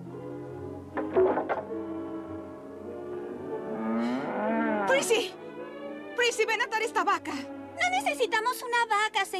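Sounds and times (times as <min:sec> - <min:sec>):
cow mooing in a dubbed film scene: 0:01.0 - 0:05.4
people talking in a dubbed film scene: 0:04.9 - 0:05.4, 0:06.2 - 0:09.3.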